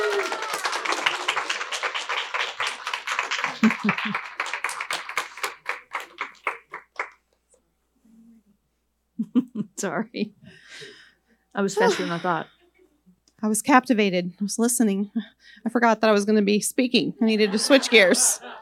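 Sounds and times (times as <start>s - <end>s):
golf clap: 0.0s - 7.2s
laughter: 3.3s - 4.6s, 11.7s - 12.9s, 17.2s - 18.6s
speech: 3.8s - 4.3s, 9.8s - 10.9s, 11.6s - 12.6s, 13.4s - 18.5s.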